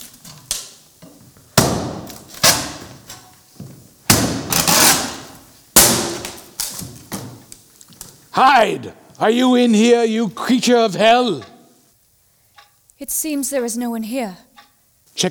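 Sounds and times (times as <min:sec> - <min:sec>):
door being broken down: 0:01.5 - 0:03.3, 0:04.1 - 0:07.5
speech: 0:08.4 - 0:11.5, 0:13.0 - 0:14.5.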